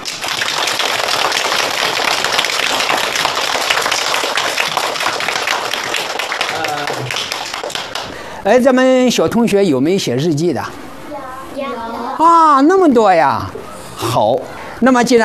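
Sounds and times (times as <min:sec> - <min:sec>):
classroom applause welcoming a guest: 0:00.0 - 0:08.3
speech: 0:08.4 - 0:10.8, 0:11.6 - 0:15.2.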